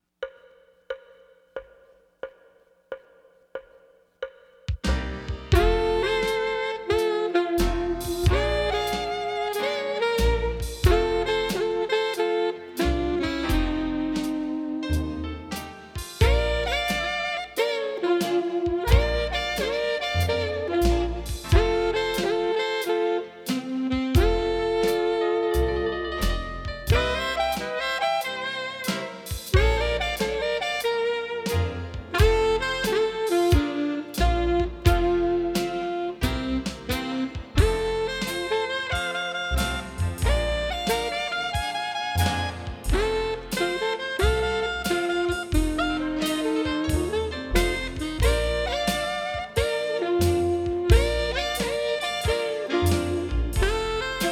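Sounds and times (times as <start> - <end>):
slow and easy blues music: 4.8 - 54.3.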